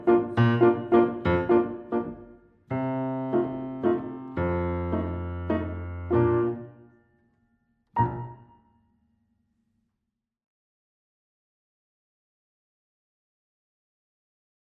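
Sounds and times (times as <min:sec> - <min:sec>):
instrumental music: 0:00.0 - 0:07.0, 0:08.0 - 0:08.6.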